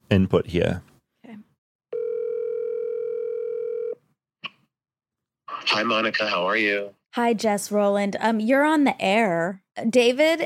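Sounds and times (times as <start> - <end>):
speech: 0.1 - 0.9, 5.7 - 10.4
phone call dialing tone on speakerphone: 1.9 - 4.0.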